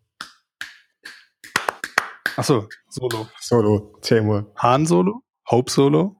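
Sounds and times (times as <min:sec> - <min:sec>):
hand clapping solo: 0:00.0 - 0:03.4
speech: 0:02.4 - 0:06.1.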